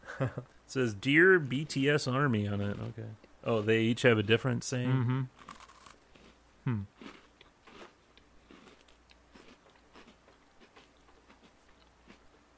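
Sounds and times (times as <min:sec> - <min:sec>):
speech: 0:00.2 - 0:05.5, 0:06.6 - 0:07.2
chewing a crunchy Oreo cookie: 0:05.4 - 0:06.4, 0:07.0 - 0:12.3.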